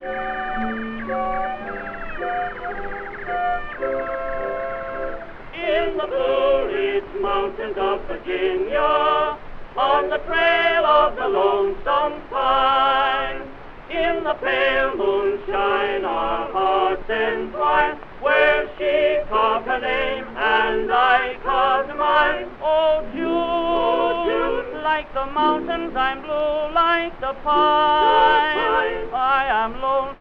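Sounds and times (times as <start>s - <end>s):
orchestra playing: 0.0s - 5.3s
tenor singing: 0.0s - 30.1s.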